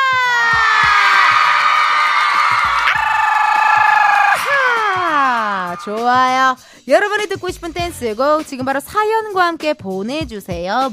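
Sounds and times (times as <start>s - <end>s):
audience cheering and shouting: 0.0s - 6.0s
speech: 5.8s - 10.9s.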